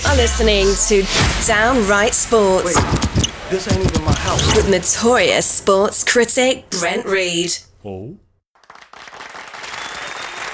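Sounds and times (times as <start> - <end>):
speech: 0.2 - 8.2
hand clapping applause: 8.6 - 10.5.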